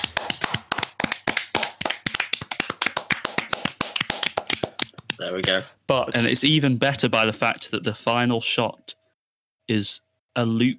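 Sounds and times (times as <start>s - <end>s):
small group applause: 0.0s - 5.6s
speech: 5.2s - 8.9s, 9.7s - 10.7s.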